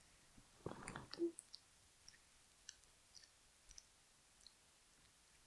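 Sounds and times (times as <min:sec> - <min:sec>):
wet squelching sounds: 0:00.6 - 0:01.3.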